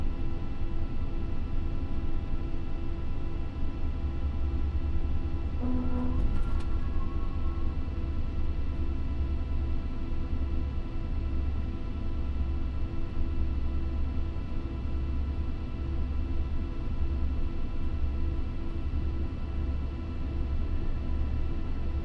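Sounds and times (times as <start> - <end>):
Lockheed L-1049 Super Constellation aircraft idling heard from interior: 0.0 - 22.0.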